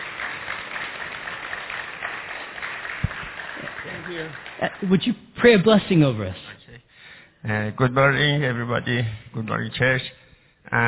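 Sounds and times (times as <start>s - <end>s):
audience applause: 0.0s - 5.1s
speech: 4.1s - 6.4s, 7.4s - 10.1s, 10.7s - 10.8s.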